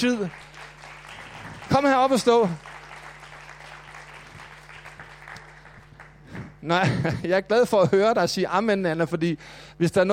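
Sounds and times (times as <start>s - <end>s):
speech: 0.0s - 0.5s, 1.7s - 2.7s, 6.6s - 10.1s
audience applause: 0.0s - 6.6s
laughter: 6.7s - 7.3s.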